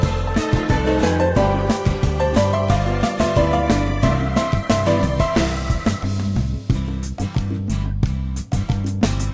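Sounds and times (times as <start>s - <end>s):
background music: 0.0s - 9.3s.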